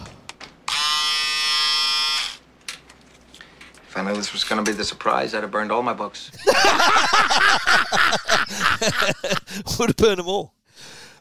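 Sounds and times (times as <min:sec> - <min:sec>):
electric razor buzzing: 0:00.7 - 0:02.4
speech: 0:04.0 - 0:11.0
laughter: 0:06.4 - 0:09.6.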